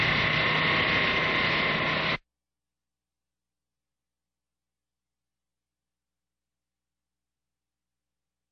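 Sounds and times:
general construction site background noise: 0:00.0 - 0:02.2.

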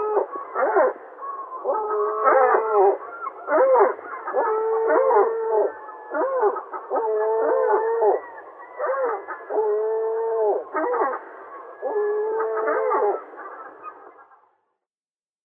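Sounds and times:
large sea gull throat calls: 0:00.0 - 0:14.1.

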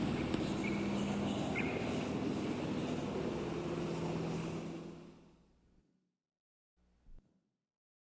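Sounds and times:
cars heard from a small park: 0:00.0 - 0:05.4.

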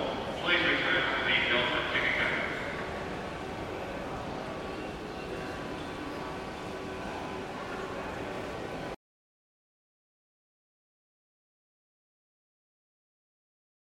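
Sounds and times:
few people in airport background: 0:00.0 - 0:09.0.

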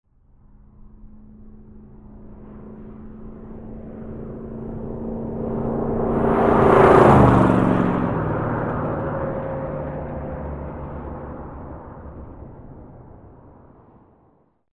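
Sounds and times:
vehicle passing: 0:00.7 - 0:13.9.

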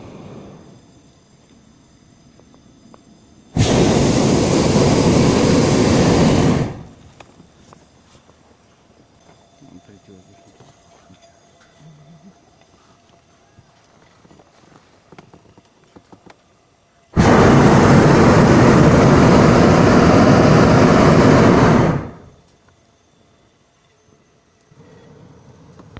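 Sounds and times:
balloon in the air: 0:03.6 - 0:07.1, 0:17.2 - 0:22.3.

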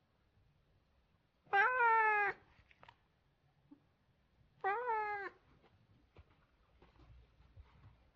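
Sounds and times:
Siamese cat meowing: 0:01.5 - 0:02.4, 0:04.6 - 0:05.4.

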